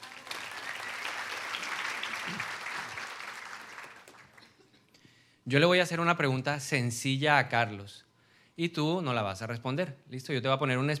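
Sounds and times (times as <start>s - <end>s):
audience applause: 0.0s - 4.5s
speech: 5.5s - 10.9s.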